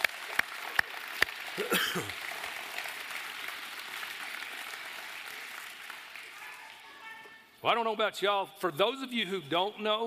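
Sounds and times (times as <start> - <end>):
audience clapping for the kids: 0.0 - 7.4
speech: 1.6 - 2.2, 7.6 - 10.0.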